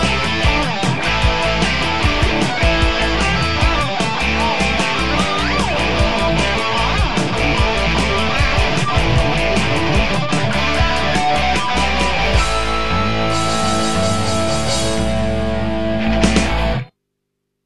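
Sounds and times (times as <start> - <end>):
two rock rhythm guitars: 0.0 - 16.9.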